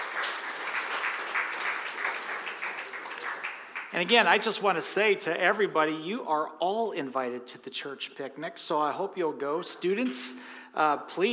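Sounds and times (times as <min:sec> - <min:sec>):
audience applause: 0:00.0 - 0:04.5
speech: 0:03.9 - 0:11.3.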